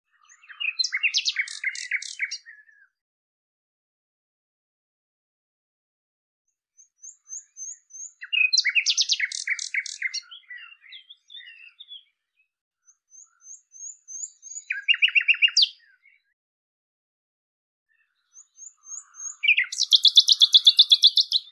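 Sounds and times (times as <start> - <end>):
Common nightingale song with chirps and rattling series: 0.2 - 2.6, 6.8 - 12.1, 12.9 - 16.0, 18.2 - 21.5.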